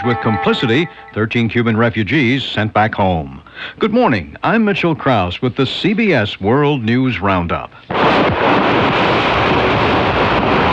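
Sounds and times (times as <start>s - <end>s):
speech: 0.0s - 9.0s
hail in the Dallas-Fort Worth area: 7.9s - 10.7s
rain in the Dallas-Fort Worth area: 7.9s - 10.7s
storm wind in the Dallas-Fort Worth area: 7.9s - 10.7s.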